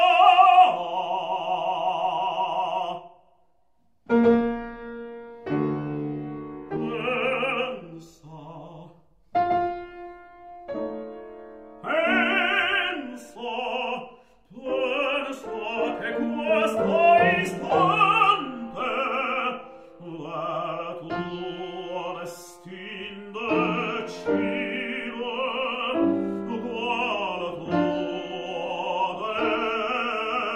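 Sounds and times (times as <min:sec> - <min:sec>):
piano: 0:00.0 - 0:03.2, 0:04.0 - 0:30.5
alto: 0:04.1 - 0:07.6, 0:09.4 - 0:13.1, 0:14.7 - 0:30.5.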